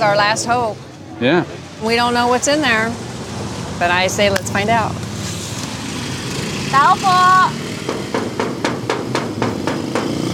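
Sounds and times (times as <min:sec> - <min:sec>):
speech: 0:00.0 - 0:03.1, 0:03.8 - 0:05.0, 0:06.7 - 0:07.6
knocking on a door: 0:07.8 - 0:10.3.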